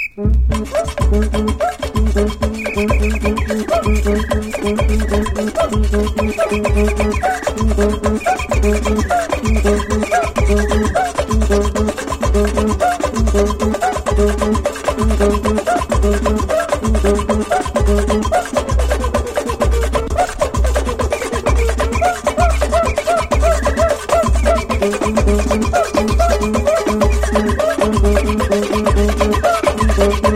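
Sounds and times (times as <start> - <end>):
batucada drumming: 0.2 - 30.3.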